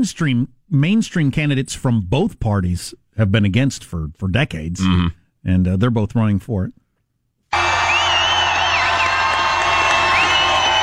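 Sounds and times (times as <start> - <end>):
speech: 0.0 - 6.8
crowd noise: 7.6 - 10.8.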